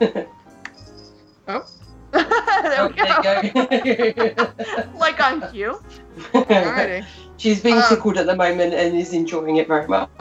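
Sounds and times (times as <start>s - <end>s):
speech: 0.0s - 0.2s, 1.5s - 1.8s, 2.9s - 10.2s
jingling bells on a cat's collar: 0.8s - 4.0s
laughter: 2.2s - 8.2s.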